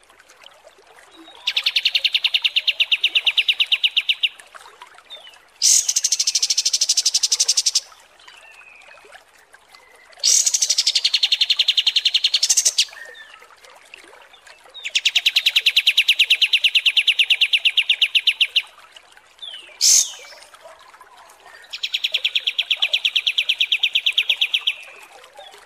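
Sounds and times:
kapas tembak song: 0:01.3 - 0:04.4, 0:05.6 - 0:07.9, 0:10.2 - 0:13.2, 0:14.8 - 0:18.7, 0:19.4 - 0:20.5, 0:21.6 - 0:25.0.

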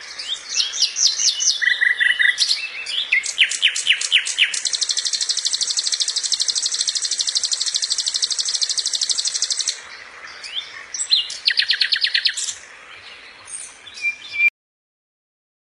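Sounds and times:
songbird masteran song with squeaky chattering and sharp chirps: 0:00.2 - 0:12.6.

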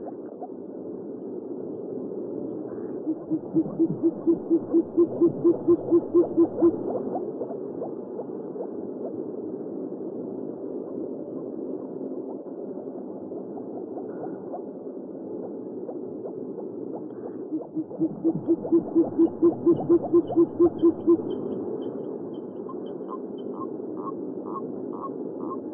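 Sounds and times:
owl hooting: 0:02.5 - 0:08.3, 0:13.5 - 0:14.7, 0:15.9 - 0:25.6.

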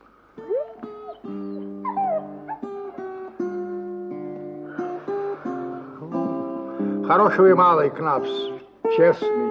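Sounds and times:
dog whimpering with whines and yips: 0:00.4 - 0:02.8
speech: 0:07.1 - 0:09.4.

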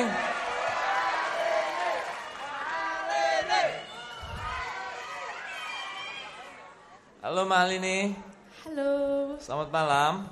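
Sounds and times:
studio audience supporters cheering at a singing competition's final showcase: 0:00.0 - 0:06.8
speech: 0:07.3 - 0:10.3.

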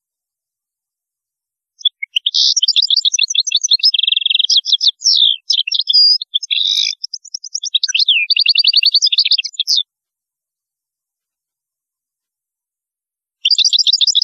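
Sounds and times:
European goldfinch singing twitters and buzzy trills: 0:01.8 - 0:09.8, 0:13.4 - 0:14.2.

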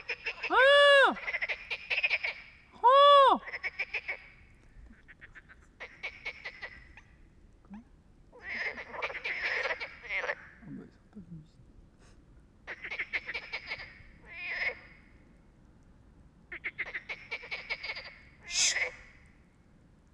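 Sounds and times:
frogs croaking: 0:00.0 - 0:02.8, 0:03.4 - 0:10.8, 0:12.7 - 0:15.3, 0:16.5 - 0:19.5.

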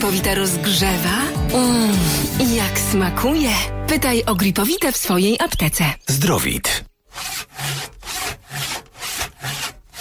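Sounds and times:
speech: 0:00.0 - 0:07.3
hand saw cutting through the lower branches of a Christmas tree: 0:07.1 - 0:09.9.

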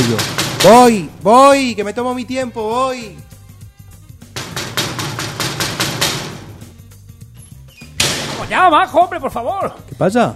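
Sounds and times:
knocking on a door: 0:00.0 - 0:01.0, 0:04.4 - 0:06.6
speech: 0:00.1 - 0:03.2, 0:08.5 - 0:10.3.

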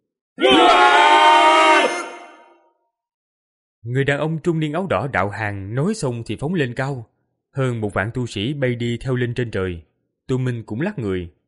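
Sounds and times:
huge crowd roaring battle cry: 0:00.4 - 0:02.6
speech: 0:03.9 - 0:11.4.

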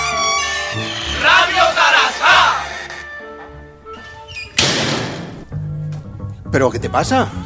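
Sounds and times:
venue door opening in a comedy sketch: 0:00.0 - 0:05.5
speech: 0:06.6 - 0:07.4.

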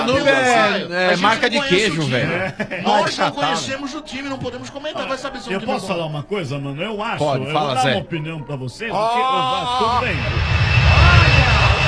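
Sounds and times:
speech: 0:00.1 - 0:11.7
laughter: 0:01.8 - 0:03.6, 0:09.2 - 0:10.2
airplane flying overhead: 0:09.7 - 0:11.8.

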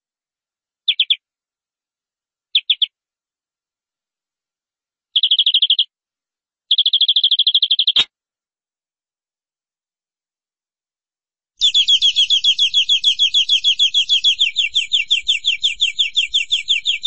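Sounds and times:
canary song with trills: 0:00.9 - 0:01.2, 0:02.6 - 0:02.9, 0:05.2 - 0:05.9, 0:06.7 - 0:08.1, 0:11.6 - 0:17.0.

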